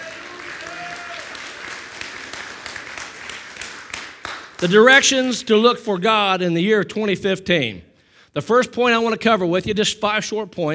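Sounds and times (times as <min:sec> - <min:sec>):
audience clapping: 0:00.0 - 0:05.0
speech: 0:04.6 - 0:10.7.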